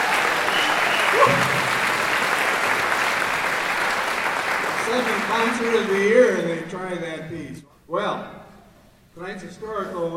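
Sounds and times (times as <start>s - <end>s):
audience applause for a band: 0.0s - 6.1s
speech: 5.0s - 8.4s, 9.2s - 10.1s.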